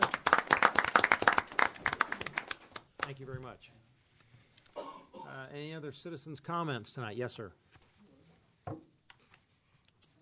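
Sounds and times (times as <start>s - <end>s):
audience applauding at a public meeting: 0.0s - 3.2s
speech: 3.1s - 3.9s, 5.3s - 7.7s.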